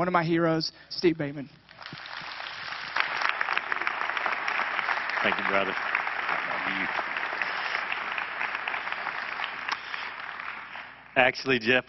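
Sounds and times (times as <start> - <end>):
speech: 0.0 - 1.6, 5.2 - 5.9, 6.7 - 7.1, 11.2 - 11.8
audience applause at a church service welcoming a guest speaker: 1.7 - 11.0.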